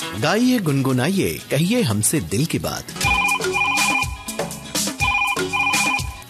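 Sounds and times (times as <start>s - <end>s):
speech: 0.2s - 3.0s
musical phone ringtone: 3.0s - 6.2s.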